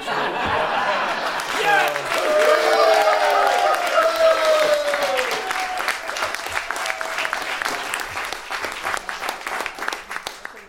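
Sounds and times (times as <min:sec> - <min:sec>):
laughter and cheering voices: 0:00.0 - 0:08.1
crowd applause: 0:00.3 - 0:10.6.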